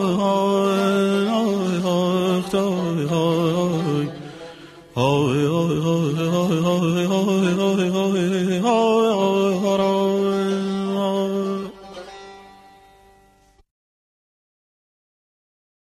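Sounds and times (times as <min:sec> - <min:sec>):
person singing: 0:00.0 - 0:12.2
saz playing: 0:00.0 - 0:13.6.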